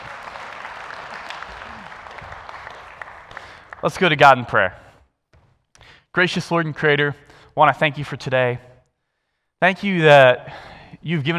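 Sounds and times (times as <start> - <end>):
round of applause: 0.0 - 4.2
speech: 3.8 - 4.8, 6.2 - 8.7, 9.6 - 11.3.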